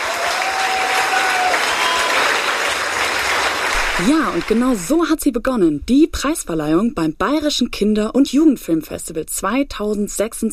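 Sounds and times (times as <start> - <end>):
audience applause: 0.0 - 4.9
speech: 4.0 - 10.5.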